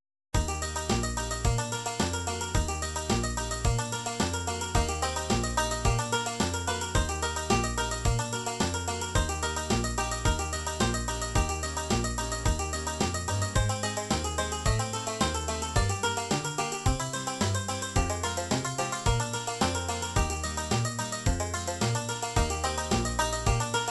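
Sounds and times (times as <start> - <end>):
karaoke midi music: 0.4 - 23.9.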